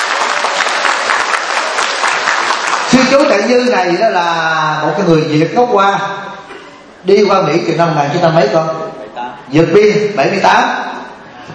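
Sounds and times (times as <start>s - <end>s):
audience applause welcoming a novice monk: 0.0s - 3.5s
speech: 3.0s - 6.3s, 7.0s - 8.8s, 9.5s - 10.8s.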